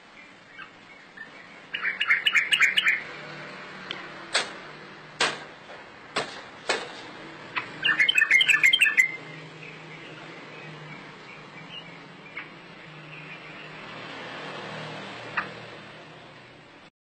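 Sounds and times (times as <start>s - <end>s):
bird chirping: 0.0s - 4.1s, 7.5s - 14.0s.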